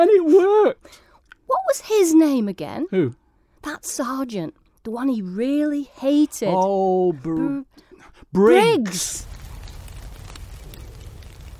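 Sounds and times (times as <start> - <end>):
speech: 0.0 - 9.3
rain falling: 8.6 - 11.5.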